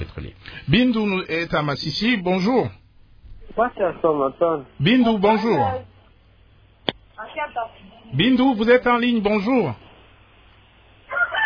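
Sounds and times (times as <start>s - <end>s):
speech: 0.0s - 2.8s, 3.5s - 5.9s, 7.4s - 9.8s
low hum: 0.0s - 11.4s
rooster crowing in Massissi: 11.0s - 11.4s.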